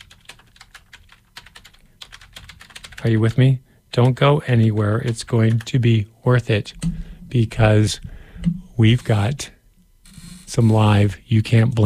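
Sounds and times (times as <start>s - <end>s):
quiet typing on a computer keyboard: 0.0s - 3.3s, 5.0s - 5.7s
speech: 3.0s - 9.6s, 10.5s - 11.8s.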